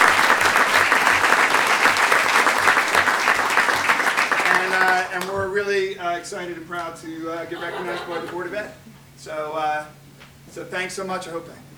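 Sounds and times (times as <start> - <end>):
applause for an assistant swim coach at a Board of Education recognition: 0.0 - 5.5, 7.5 - 8.5
laughter: 0.0 - 5.5, 6.4 - 9.8
speech: 5.2 - 10.0, 10.6 - 11.6.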